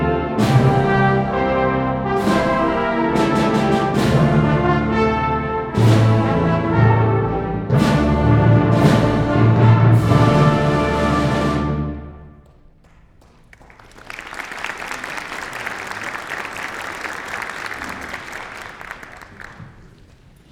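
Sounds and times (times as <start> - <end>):
national anthem music: 0.0 - 12.9.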